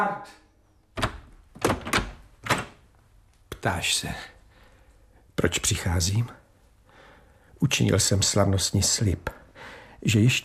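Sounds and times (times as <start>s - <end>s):
speech: 0.0s - 0.4s, 3.6s - 4.3s, 5.4s - 6.4s, 7.6s - 10.4s
door sound effect in a Czech radio drama: 1.0s - 2.8s.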